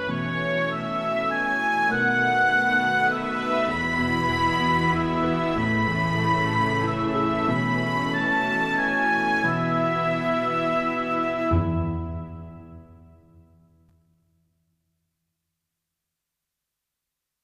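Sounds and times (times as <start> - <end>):
lullaby music: 0.0 - 13.2.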